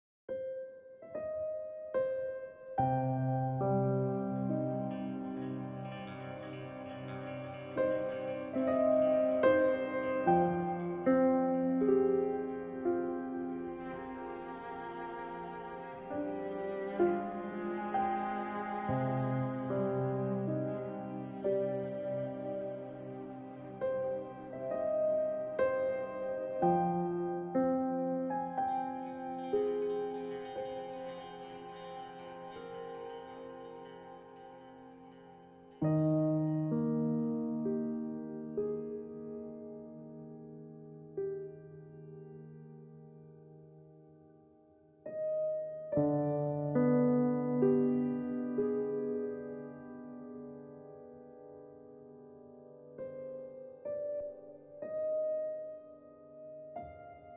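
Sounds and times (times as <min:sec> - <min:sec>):
mystical piano: 0:00.3 - 0:57.3.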